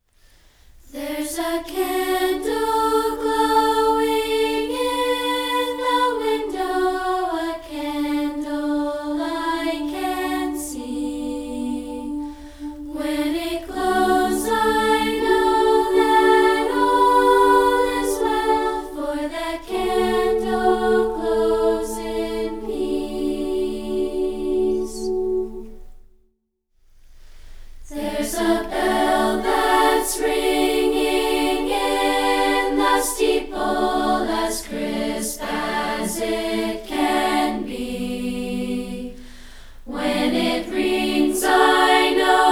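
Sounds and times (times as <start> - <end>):
a cappella singing: 0.8 - 26.0, 27.8 - 42.5.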